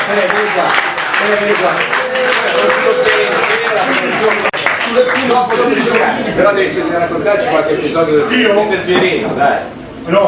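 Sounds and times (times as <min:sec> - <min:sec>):
applause for a musician at a local gathering: 0:00.0 - 0:06.3
speech: 0:00.1 - 0:10.2.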